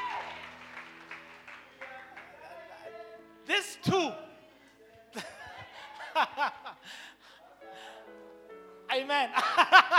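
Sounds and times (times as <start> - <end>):
audience round of applause: 0.0 - 2.6
speech: 3.6 - 4.3, 9.1 - 9.8
laughter: 5.1 - 7.0, 9.3 - 9.9.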